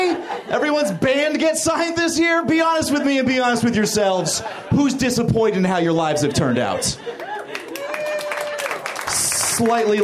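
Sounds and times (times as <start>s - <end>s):
laughter: 0.0s - 1.4s, 2.2s - 10.0s
speech: 0.5s - 7.3s, 9.6s - 10.0s
audience clapping: 7.1s - 10.0s.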